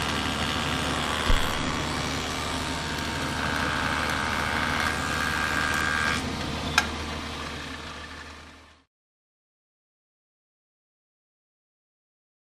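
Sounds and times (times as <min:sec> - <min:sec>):
joiner wood turning machine turning on: 0:00.0 - 0:08.8.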